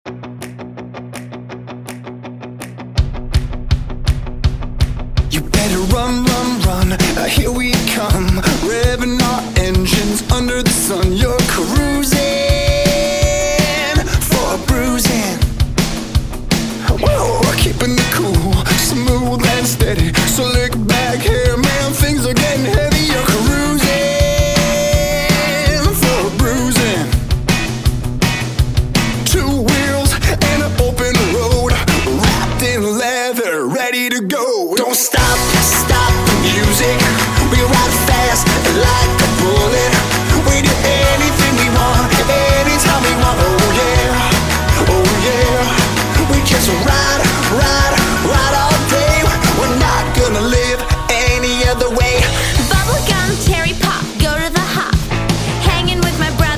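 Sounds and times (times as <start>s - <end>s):
jazz hip hop music: 3.1s - 56.5s.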